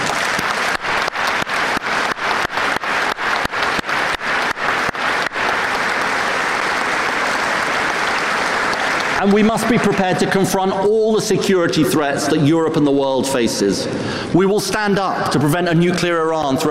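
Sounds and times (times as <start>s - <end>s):
audience applause: 0.0s - 10.7s
speech: 9.2s - 16.6s.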